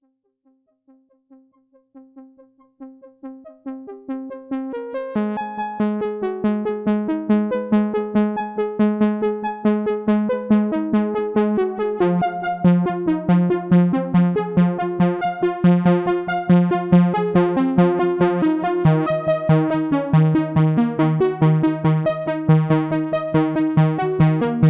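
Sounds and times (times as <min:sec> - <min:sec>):
Arturia MatrixBrute synthesizer: 0:01.3 - 0:24.6.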